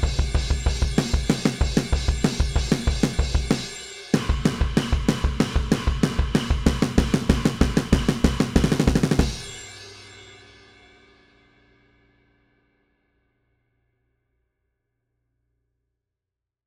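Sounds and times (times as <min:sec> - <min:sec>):
punk drums: 0:00.0 - 0:09.7.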